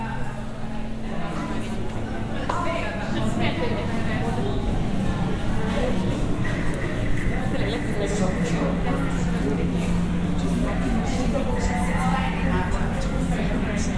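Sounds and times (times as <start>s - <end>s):
women's and men's overlapping voices and chatter in public spaces: 0.0s - 13.9s.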